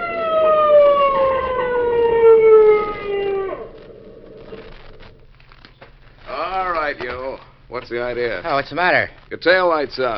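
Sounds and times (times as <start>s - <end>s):
police motorcycle siren: 0.0s - 5.2s
police motorcycle engine rumble: 0.0s - 7.0s
speech: 7.8s - 10.1s.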